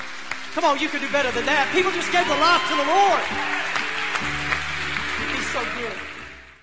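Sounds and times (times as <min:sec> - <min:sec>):
audience hand clapping: 0:00.0 - 0:06.6
speech: 0:00.6 - 0:04.4.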